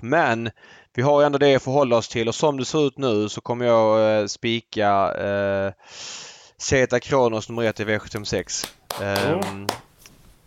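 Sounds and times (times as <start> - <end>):
speech: 0.0 - 9.8
hand clapping: 8.0 - 10.0.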